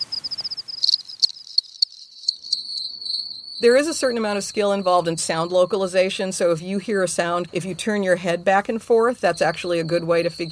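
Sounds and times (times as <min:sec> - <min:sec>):
cricket song: 0:00.0 - 0:05.8
speech: 0:03.6 - 0:10.5.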